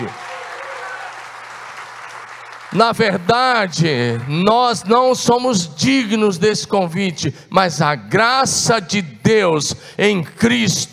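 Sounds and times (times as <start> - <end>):
speech: 0.0 - 0.2, 2.7 - 10.9
audience applauding: 0.0 - 4.9.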